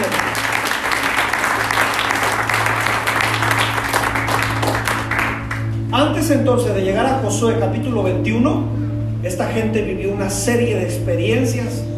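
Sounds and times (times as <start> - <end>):
audience applause: 0.0 - 5.7
low constant hum: 0.0 - 11.9
speech: 6.2 - 11.9.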